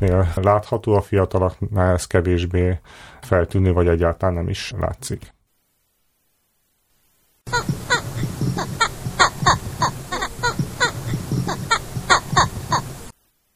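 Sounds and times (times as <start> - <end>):
speech: 0.0 - 5.4
Eastern imperial eagle calls: 7.5 - 13.1.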